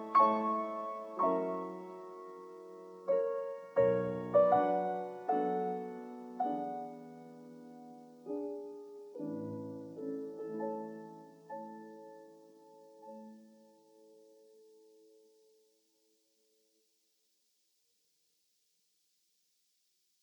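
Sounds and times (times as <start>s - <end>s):
classical prelude in A major: 0.0s - 14.1s.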